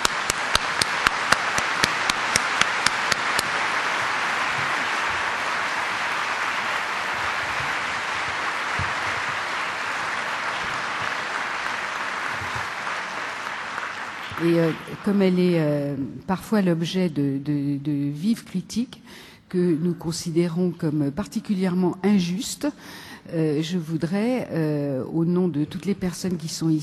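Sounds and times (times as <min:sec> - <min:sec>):
audience applause: 0:00.0 - 0:15.4
speech: 0:14.4 - 0:26.8.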